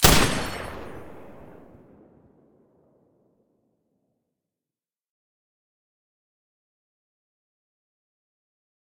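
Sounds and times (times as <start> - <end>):
M249 machine gun firing with silencer: 0.0 - 1.9.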